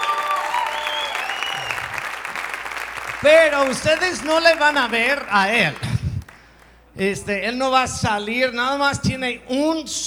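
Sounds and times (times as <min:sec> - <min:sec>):
audience applauding: 0:00.0 - 0:06.9
faint whistle-like tones: 0:00.7 - 0:02.0
speech: 0:03.2 - 0:05.9, 0:07.0 - 0:10.0.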